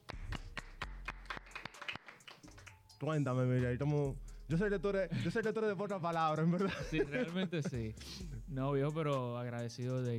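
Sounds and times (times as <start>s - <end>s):
audience applause: 1.1s - 2.3s
speech: 3.0s - 10.1s
laughter: 6.6s - 8.0s.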